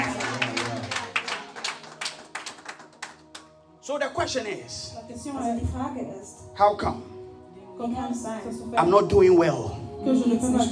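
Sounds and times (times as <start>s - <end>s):
group clapping hands: 0.0s - 3.6s
speech: 3.9s - 7.1s, 7.8s - 10.7s.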